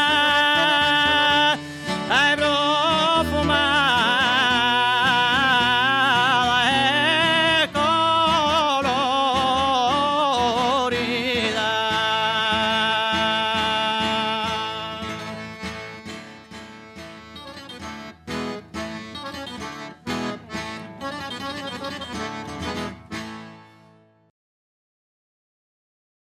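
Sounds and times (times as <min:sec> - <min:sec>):
singing with guitar: 0:00.0 - 0:23.5.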